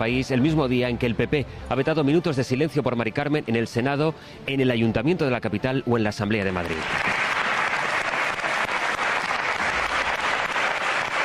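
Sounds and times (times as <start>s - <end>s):
speech: 0.0s - 7.2s
legislators applauding in assembly chamber: 6.5s - 11.2s.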